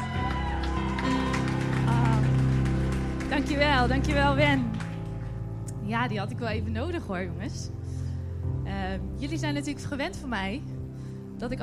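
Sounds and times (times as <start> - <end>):
audience cheering: 0.0 - 3.5
audience applause: 0.0 - 5.4
speech: 3.3 - 4.8, 5.9 - 7.8, 8.8 - 10.8, 11.4 - 11.6.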